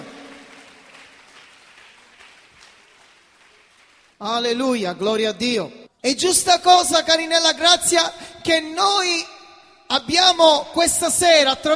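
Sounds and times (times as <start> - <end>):
audience applauding: 0.0 - 4.2
speech: 4.2 - 9.3, 9.9 - 11.7.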